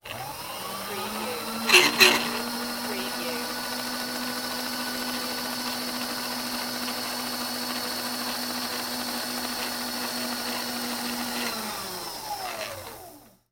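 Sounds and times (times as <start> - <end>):
industrial belt sander running: 0.1 - 13.1.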